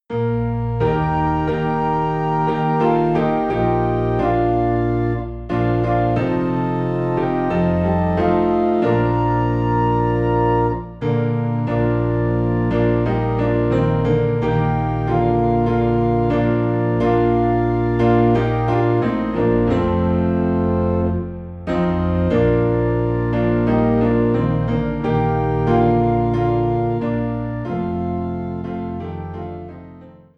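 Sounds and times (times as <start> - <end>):
low piano in B flat: 0.0 - 30.3
low organ in B flat: 0.1 - 30.1.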